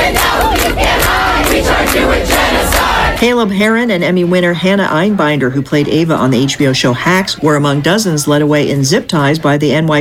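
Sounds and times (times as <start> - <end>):
protest crowd chanting and shouting: 0.0 - 3.4
speech: 3.2 - 10.0.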